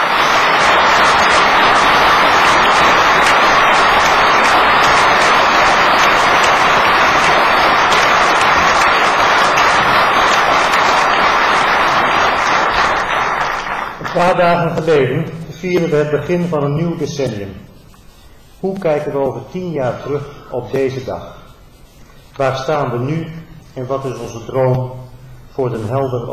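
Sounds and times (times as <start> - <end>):
audience applause: 0.0 - 14.2
speech: 14.2 - 17.7, 18.6 - 21.4, 22.4 - 25.0, 25.6 - 26.3.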